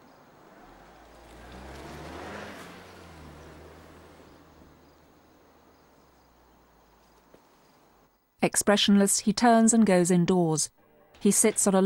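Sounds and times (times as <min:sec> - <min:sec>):
car engine rumble reversing out of a driveway and driving off: 0:00.0 - 0:08.1
speech: 0:08.4 - 0:11.8.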